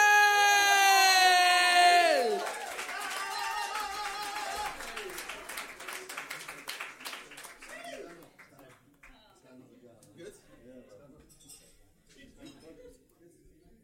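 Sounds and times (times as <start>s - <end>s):
crowd whooping and cheering: 0.0s - 5.3s
crowd applause: 0.0s - 8.6s.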